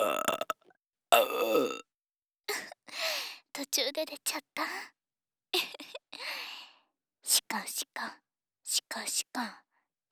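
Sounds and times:
person burping: 0.0 - 0.6, 1.2 - 1.8
speech: 3.8 - 5.7, 7.5 - 9.6.

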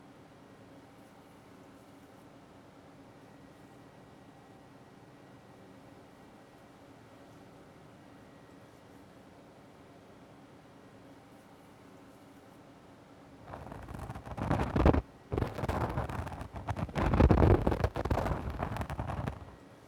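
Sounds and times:
ear cleaning on the left side: 13.5 - 19.6.

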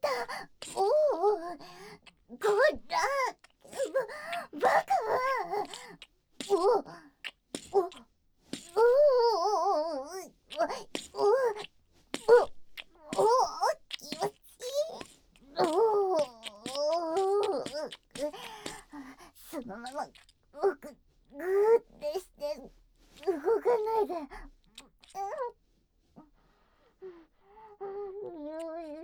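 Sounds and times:
ear licking: 0.2 - 0.9, 1.7 - 21.3, 24.3 - 25.7
person whispering: 2.5 - 12.5, 13.0 - 25.5
kissing sounds: 5.4 - 9.4, 10.5 - 20.3.

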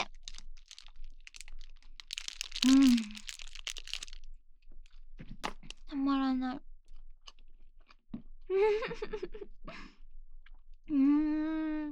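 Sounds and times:
eating a Ministop salmon onigiri: 0.0 - 5.9
speech: 6.4 - 6.7, 8.6 - 9.9, 10.9 - 11.9.

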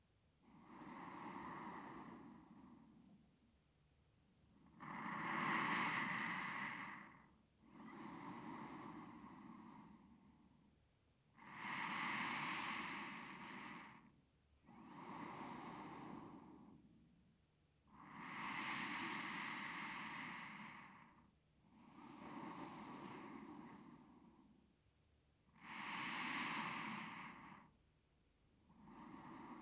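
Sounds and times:
person breathing in sleep on left side: 0.6 - 3.0, 4.8 - 10.5, 11.5 - 14.1, 14.7 - 16.8, 18.0 - 24.5, 25.6 - 27.8, 28.7 - 29.6.

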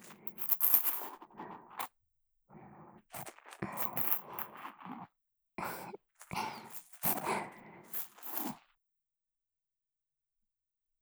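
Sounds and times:
ear cleaning ASMR sounds in the right ear: 0.0 - 1.2, 3.2 - 4.9, 5.7 - 8.6.

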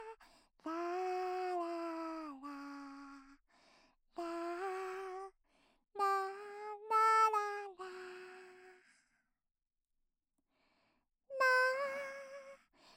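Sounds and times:
lullaby without reverb: 0.0 - 3.4, 4.2 - 5.4, 6.0 - 9.2, 11.3 - 12.9.

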